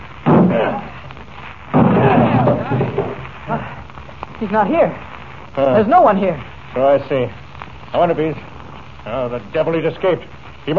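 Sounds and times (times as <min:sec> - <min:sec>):
door being broken down: 0:00.3 - 0:00.8, 0:01.8 - 0:03.2
speech: 0:00.5 - 0:00.9, 0:04.4 - 0:10.7.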